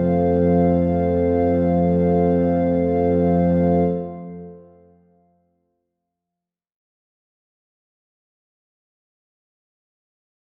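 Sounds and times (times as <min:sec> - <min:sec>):
organ: 0:00.0 - 0:05.0.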